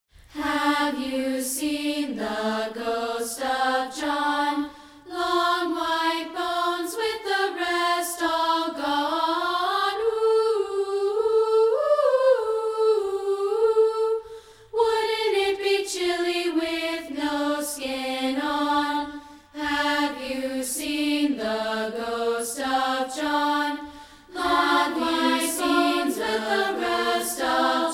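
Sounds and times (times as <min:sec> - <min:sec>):
a cappella singing: 0:00.3 - 0:27.9.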